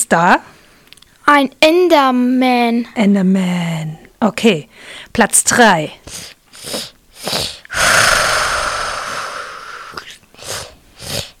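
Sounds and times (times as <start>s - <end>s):
speech: 0.1s - 0.6s, 1.3s - 6.9s
video game dragon creature sound effect: 6.6s - 11.3s.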